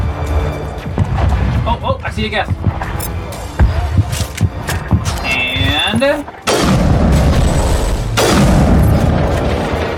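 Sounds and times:
dense rumbling video game sound: 0.0 - 5.0, 6.5 - 9.9
speech: 2.2 - 2.8, 6.0 - 6.4
sniper rifle shot in a video game: 6.5 - 9.0.

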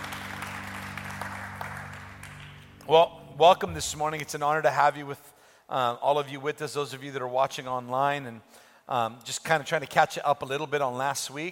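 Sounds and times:
church congregation clapping after a closing prayer: 0.0 - 2.9
sustained low keyboard chord: 0.0 - 4.4
speech: 2.9 - 11.5.

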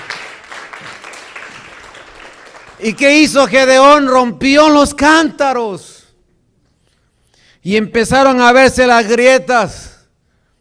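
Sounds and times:
audience clapping as an offering: 0.0 - 3.0
speech: 2.8 - 5.9, 7.6 - 9.9.

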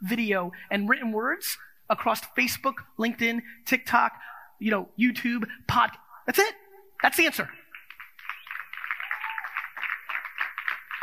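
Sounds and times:
speech: 0.0 - 7.6
scattered audience claps: 7.0 - 11.0.

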